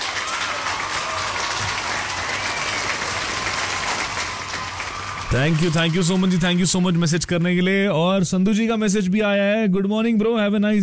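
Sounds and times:
applause: 0:00.0 - 0:07.2
speech: 0:05.3 - 0:10.8.

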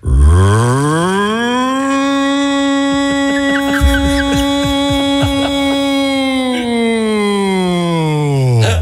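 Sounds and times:
voice imitating an air raid siren: 0:00.0 - 0:08.6
laughter: 0:02.9 - 0:08.8.

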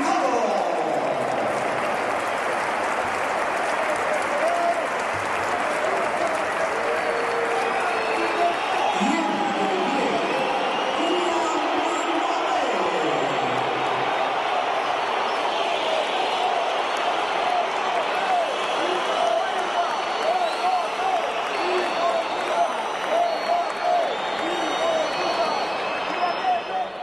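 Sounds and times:
applause: 0:00.0 - 0:27.0
large stadium crowd roaring: 0:00.0 - 0:27.0
shrill whistling: 0:19.6 - 0:27.0.

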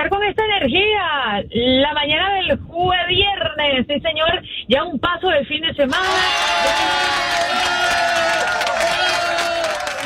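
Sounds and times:
speech: 0:00.3 - 0:07.9
crowd applause and cheering: 0:05.9 - 0:10.0.

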